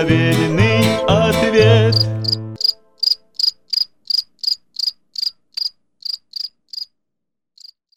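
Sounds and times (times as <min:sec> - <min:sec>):
speech: 0:00.0 - 0:02.1
music: 0:00.0 - 0:03.0
grasshopper chirping: 0:01.9 - 0:06.9.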